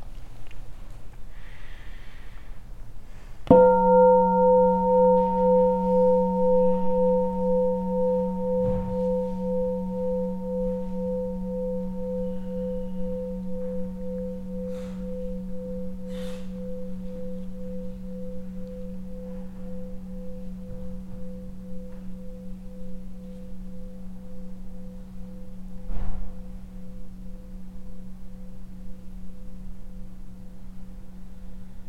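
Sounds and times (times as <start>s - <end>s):
meditation bell ringing: 3.5s - 31.8s.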